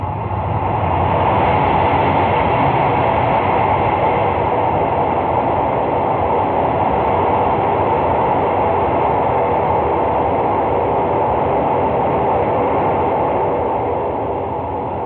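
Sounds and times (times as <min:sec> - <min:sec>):
train rumbling on rails through undersea tunnel: 0:00.0 - 0:15.0.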